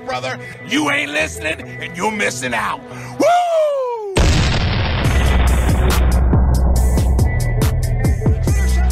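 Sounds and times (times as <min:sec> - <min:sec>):
speech: 0:00.1 - 0:03.3
cannon fire: 0:04.2 - 0:07.0
heavy continuous low rumble: 0:04.2 - 0:08.8.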